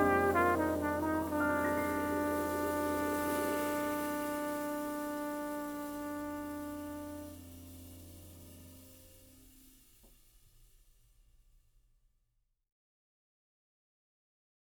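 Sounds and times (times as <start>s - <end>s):
jazz ballad with alto saxophone: 0.0s - 9.1s.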